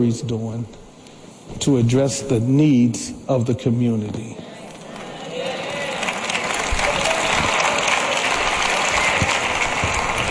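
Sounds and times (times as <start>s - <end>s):
speech: 0.0s - 0.8s, 1.5s - 4.5s
audience clapping: 4.6s - 10.3s.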